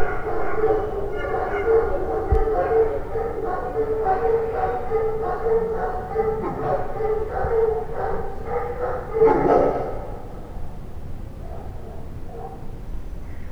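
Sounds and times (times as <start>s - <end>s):
howling toward night: 0.0s - 10.5s.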